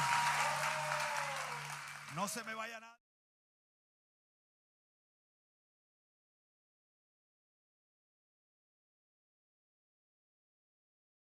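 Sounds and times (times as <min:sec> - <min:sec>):
loud applause: 0:00.0 - 0:02.8
speech: 0:02.2 - 0:03.0.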